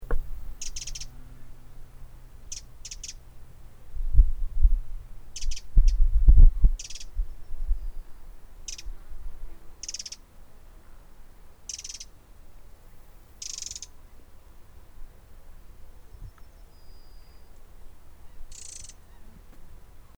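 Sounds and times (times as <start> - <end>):
low thumps: 0.0 - 7.8
Eurasian wren ticking calls: 0.0 - 8.0, 8.6 - 9.0, 9.8 - 10.3, 11.7 - 12.2, 13.3 - 14.0, 18.2 - 19.3.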